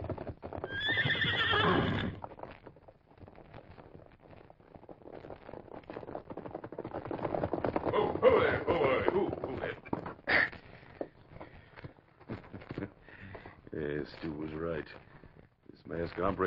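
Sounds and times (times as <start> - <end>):
stallion galloping hoofbeats: 0.0 - 16.4
stallion whinnying: 0.6 - 2.3, 7.8 - 10.7.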